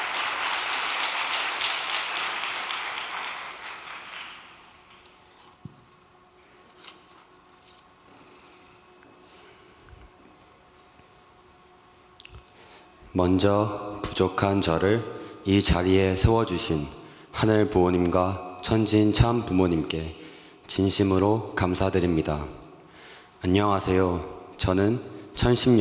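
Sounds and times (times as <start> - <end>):
audience applause: 0.0 - 4.8
speech: 13.2 - 22.6, 23.4 - 25.8.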